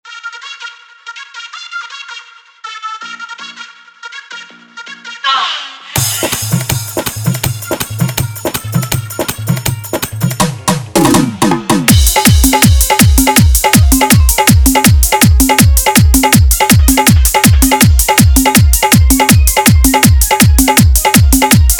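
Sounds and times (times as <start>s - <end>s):
Bhojpuri dholak bass dance mix: 6.0s - 21.7s.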